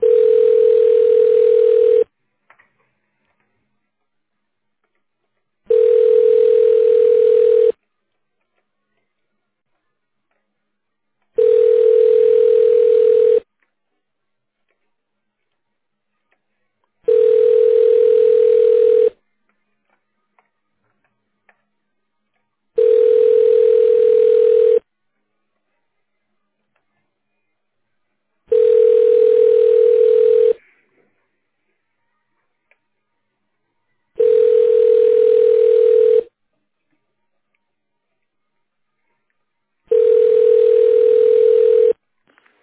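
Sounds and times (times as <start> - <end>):
telephone ringback tone while on hold: 0.0 - 2.1, 5.7 - 7.8, 11.4 - 13.5, 17.1 - 19.2, 22.8 - 24.8, 28.5 - 30.6, 34.2 - 36.3, 39.9 - 42.0.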